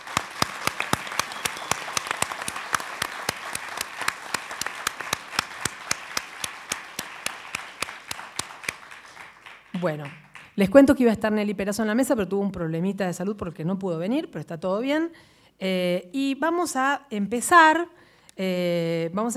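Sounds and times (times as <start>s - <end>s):
audience applause: 0.0s - 10.6s
speech: 9.8s - 19.3s.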